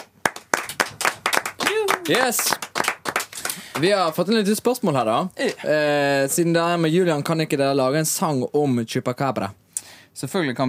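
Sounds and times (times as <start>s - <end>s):
audience applause: 0.0s - 4.2s
speech: 2.1s - 2.6s, 3.8s - 9.6s, 10.2s - 10.6s.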